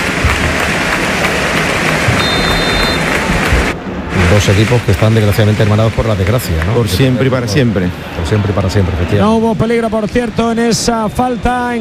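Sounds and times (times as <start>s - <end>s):
stadium applause: 0.0s - 9.2s
faint high whistle-like tone: 2.2s - 3.0s
speech: 4.4s - 11.7s.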